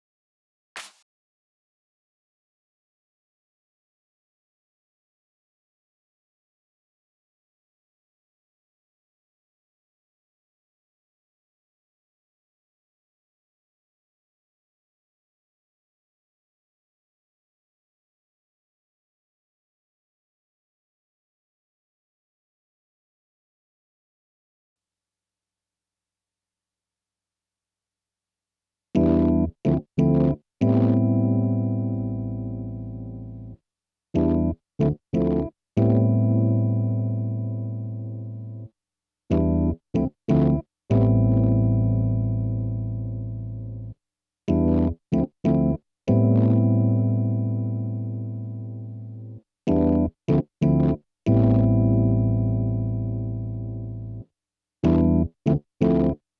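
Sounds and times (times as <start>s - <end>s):
keyboard playing: 29.0s - 33.6s, 34.2s - 38.7s, 39.3s - 43.9s, 44.5s - 54.2s, 54.8s - 56.2s.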